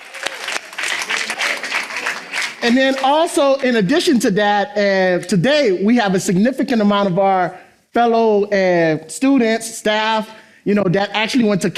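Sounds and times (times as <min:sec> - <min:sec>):
congregation clapping at a Father's Day church service: 0:00.0 - 0:04.1
speech: 0:02.6 - 0:11.7.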